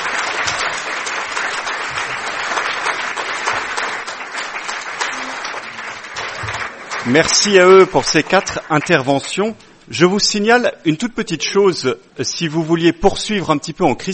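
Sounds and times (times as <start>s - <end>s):
audience applauding: 0.0s - 9.6s
speech: 7.1s - 14.1s.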